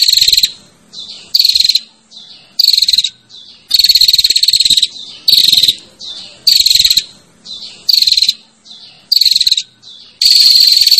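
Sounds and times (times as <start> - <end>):
female prinia calling with rasping buzzy bursts: 0.0 - 10.9.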